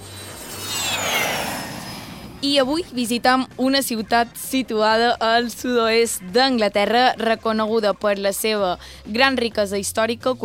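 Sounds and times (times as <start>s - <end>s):
airplane taking off: 0.0s - 6.0s
speech: 2.4s - 10.4s.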